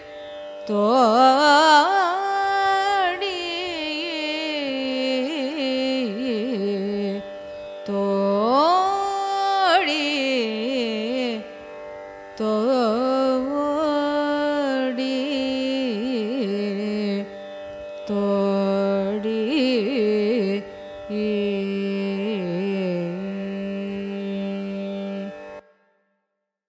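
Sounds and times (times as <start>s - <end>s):
carnatic music in raga thodi: 0.0s - 26.1s.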